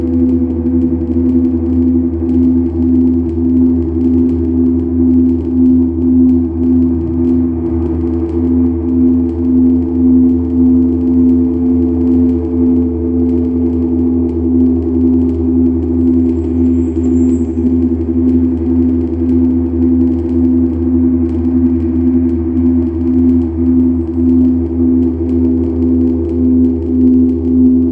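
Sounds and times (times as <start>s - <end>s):
noise upstairs: 0.0s - 27.9s.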